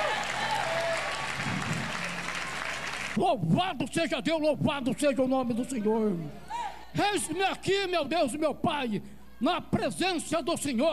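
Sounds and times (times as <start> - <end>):
audience applauding: 0.0 - 3.2
speech: 3.2 - 10.9.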